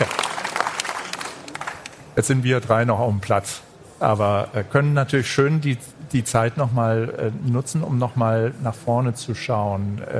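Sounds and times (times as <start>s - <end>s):
audience applause: 0.0s - 2.1s
speech: 2.2s - 10.1s.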